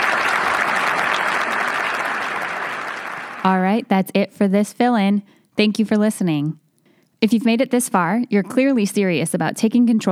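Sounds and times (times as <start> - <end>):
audience applause: 0.0 - 3.5
speech: 3.4 - 6.6, 7.2 - 10.1.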